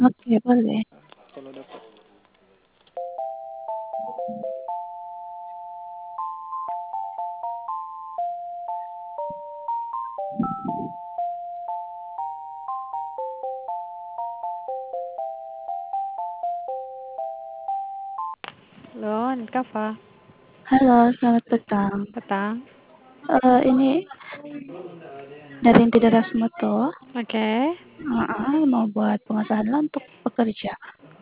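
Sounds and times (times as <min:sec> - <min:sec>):
speech: 0:00.0 - 0:01.8, 0:19.6 - 0:20.1, 0:20.7 - 0:30.9
electronic tone melody over a phone line as a call connects: 0:03.0 - 0:18.4.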